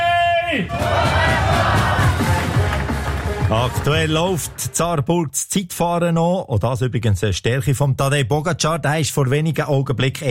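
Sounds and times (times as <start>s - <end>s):
speech: 0.5s - 1.7s, 3.5s - 10.2s
loud crowd of cycling fans roaring and cheering: 0.6s - 4.8s.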